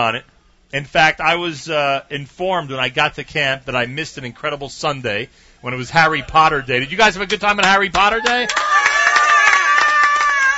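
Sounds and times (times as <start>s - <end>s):
speech: 0.0s - 8.8s
campers applauding: 7.2s - 10.5s
campers cheering: 7.9s - 10.5s.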